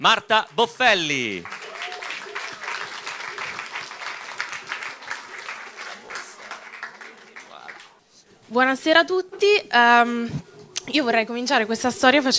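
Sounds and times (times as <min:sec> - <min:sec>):
speech: 0:00.0 - 0:01.6, 0:08.5 - 0:12.3
audience applause: 0:00.6 - 0:08.0.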